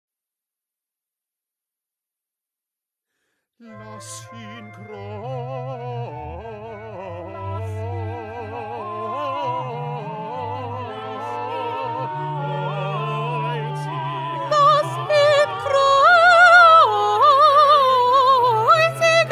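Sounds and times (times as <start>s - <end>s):
soprano singing: 3.6s - 19.3s.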